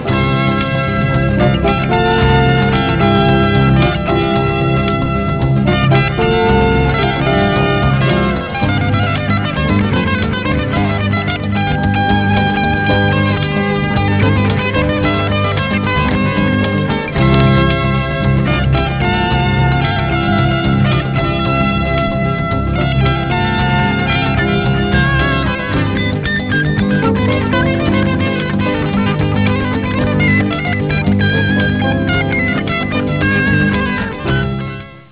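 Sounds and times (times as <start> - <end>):
joyful noise: 0.0 - 35.0.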